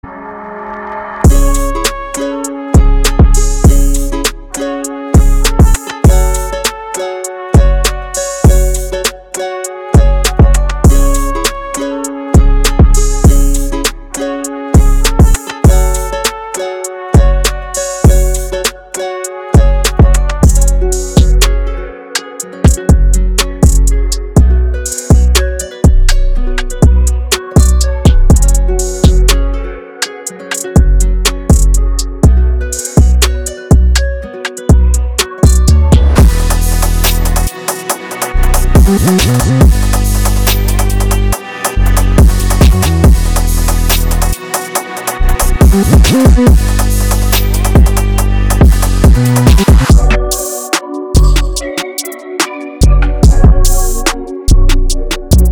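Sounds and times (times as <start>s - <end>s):
trap music: 1.2s - 55.4s.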